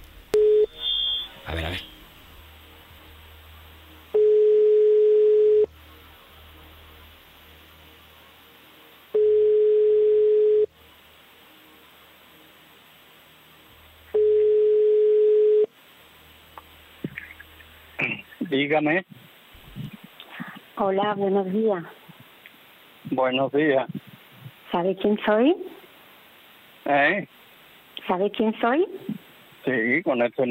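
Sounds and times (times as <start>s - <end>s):
speech: 1.5s - 1.9s, 18.6s - 19.1s, 20.8s - 22.0s, 23.2s - 24.0s, 24.7s - 25.7s, 26.9s - 27.3s, 28.1s - 29.0s, 29.6s - 30.5s
telephone ringing tone while placing a call: 4.2s - 5.7s, 9.2s - 10.7s, 14.2s - 15.7s.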